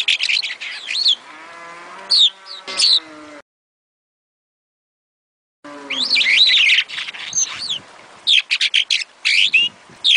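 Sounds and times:
starling singing clipped chirps, squeaky whistles and buzzy notes: 0.0 - 1.2, 2.1 - 3.1, 5.8 - 10.1.

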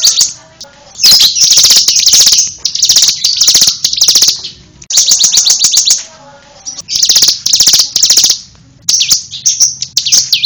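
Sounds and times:
prinia singing: 0.0 - 10.4.

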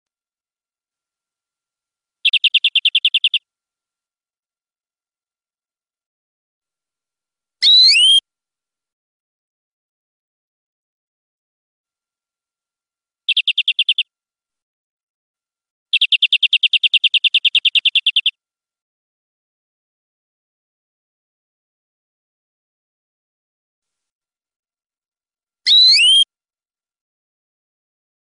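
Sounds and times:
European greenfinch buzzy trill: 2.2 - 3.4, 7.6 - 8.2, 13.3 - 14.0, 15.9 - 18.3, 25.7 - 26.3.

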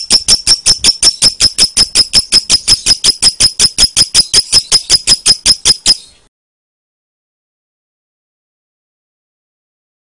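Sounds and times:
lovebird song: 0.0 - 6.3.

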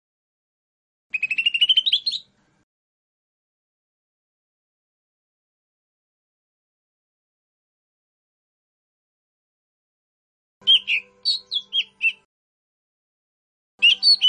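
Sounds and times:
lesser green leafbird whistled song: 1.1 - 2.3, 10.6 - 12.3, 13.8 - 14.2.

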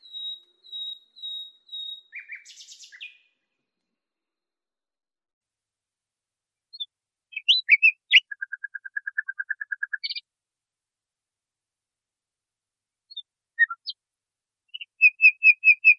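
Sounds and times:
nightingale song on a training recording for cage birds: 0.0 - 3.4, 6.7 - 10.2, 13.1 - 14.0, 14.7 - 15.9.

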